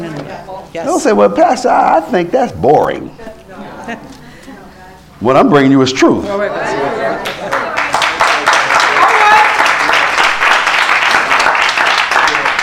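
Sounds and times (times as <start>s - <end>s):
speech: 0.4s - 4.2s, 5.2s - 7.6s
crowd clapping: 7.2s - 12.6s.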